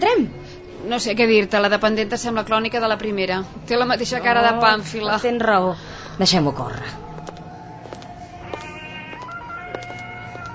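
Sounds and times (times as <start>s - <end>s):
speech: 0.9s - 7.0s
mobile phone ringtone: 8.4s - 10.5s.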